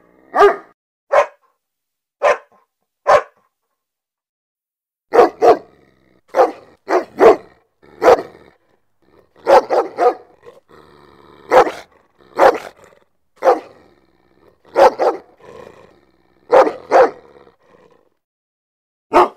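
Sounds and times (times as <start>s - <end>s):
German Shepherd barking: 0.2s - 1.5s, 2.2s - 3.5s, 5.1s - 8.5s, 9.4s - 10.6s, 11.5s - 12.8s, 13.4s - 13.8s, 14.6s - 15.4s, 16.4s - 17.4s, 19.1s - 19.3s.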